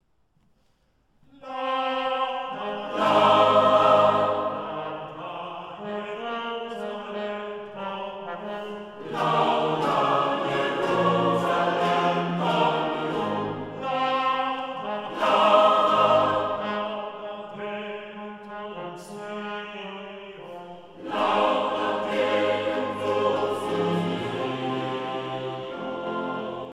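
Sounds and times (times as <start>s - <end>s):
psalm setting: 0.0s - 26.7s.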